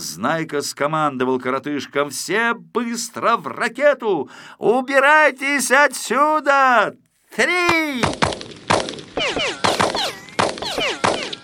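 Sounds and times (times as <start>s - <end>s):
speech: 0.2s - 8.4s
police gunshots at a steel rocket: 7.7s - 11.4s
whistling whine of passing bullets: 8.0s - 11.4s.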